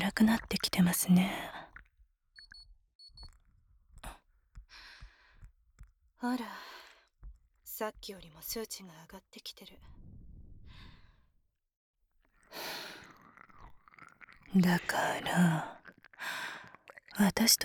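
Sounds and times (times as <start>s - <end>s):
nurse speaking in a low cool voice: 0.0s - 1.7s, 6.2s - 6.7s, 7.7s - 10.0s, 14.5s - 15.9s, 17.1s - 17.6s
ear licking: 12.8s - 17.2s.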